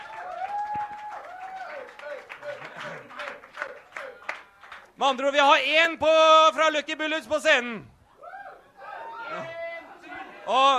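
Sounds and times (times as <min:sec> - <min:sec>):
audience clapping: 0:00.0 - 0:05.0
speech: 0:05.0 - 0:07.9, 0:10.5 - 0:10.7.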